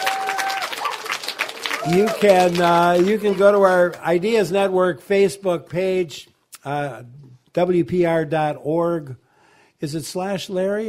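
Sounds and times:
crowd of children clapping at a gathering in Mineral Point: 0:00.0 - 0:04.2
speech: 0:01.8 - 0:09.2, 0:09.8 - 0:10.8.

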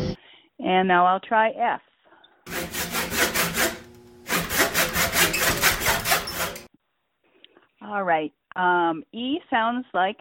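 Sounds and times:
speech: 0:00.6 - 0:02.7, 0:07.9 - 0:10.2
hacksaw cutting a piece of wood: 0:02.5 - 0:06.7.

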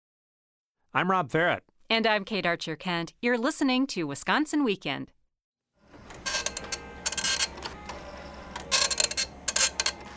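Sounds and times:
speech: 0:00.9 - 0:05.2
old printer clacking while printing: 0:05.9 - 0:10.1.

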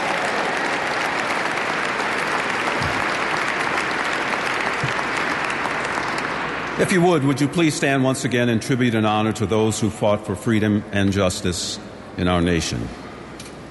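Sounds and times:
audience applause: 0:00.0 - 0:07.0
speech: 0:06.8 - 0:13.0.

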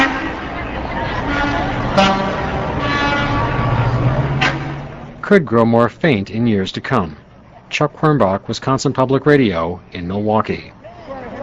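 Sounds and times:
truck horns honking at the Milwaukee Labor Parade: 0:00.0 - 0:05.3
street noise at the Milwaukee Labor Parade: 0:00.0 - 0:11.4
speech: 0:05.3 - 0:10.8.

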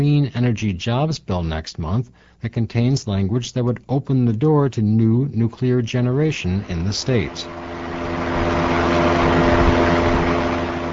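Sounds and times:
speech: 0:00.0 - 0:08.2
barn fan blowing air: 0:06.0 - 0:10.9.

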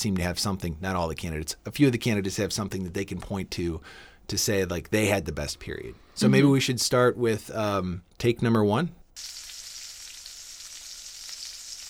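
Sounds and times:
speech: 0:00.0 - 0:09.4
bacon frying: 0:09.2 - 0:11.8.

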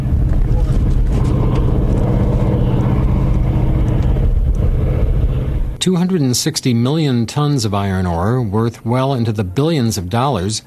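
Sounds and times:
heavy ore-hauling trucks rumbling in a mine: 0:00.0 - 0:05.8
speech: 0:05.8 - 0:10.6.

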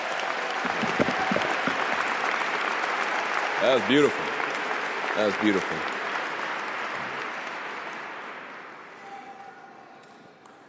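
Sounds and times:
audience applause after musicians perform at a celebration honoring Dr. King: 0:00.0 - 0:08.9
speech: 0:03.6 - 0:04.3, 0:05.2 - 0:05.9.

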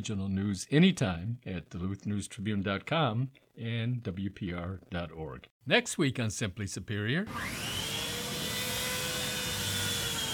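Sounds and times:
speech: 0:00.0 - 0:07.8
chainsaw running: 0:07.3 - 0:10.3.

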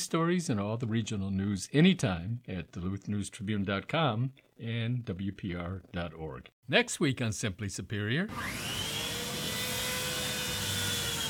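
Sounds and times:
speech: 0:00.0 - 0:08.7
chainsaw running: 0:08.3 - 0:11.2.

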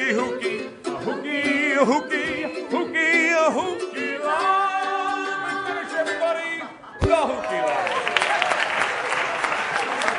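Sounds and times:
person singing: 0:00.0 - 0:07.4
speech: 0:01.8 - 0:02.2
audience applause: 0:07.3 - 0:10.1.

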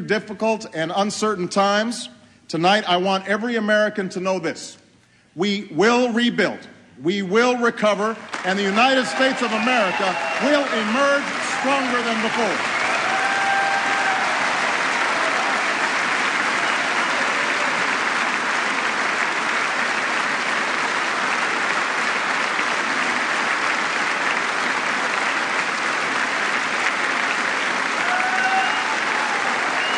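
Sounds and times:
speech: 0:00.0 - 0:04.8, 0:05.4 - 0:12.7
applause from members of both parties in a legislative chamber: 0:08.2 - 0:29.9.

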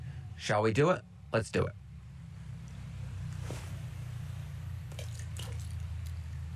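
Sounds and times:
speech: 0:00.4 - 0:01.8
low rush of flowing water: 0:03.7 - 0:06.3.

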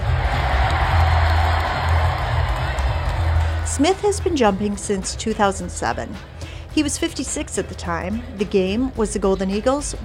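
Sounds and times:
large arena crowd cheering wildly with whoops: 0:00.0 - 0:04.3
speech: 0:03.8 - 0:10.0.

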